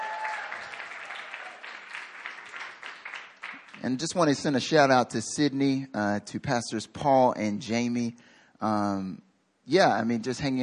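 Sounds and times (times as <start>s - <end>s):
audience applause welcoming visitors from Sydney in Hongdae: 0.0s - 3.9s
speech: 3.8s - 10.6s.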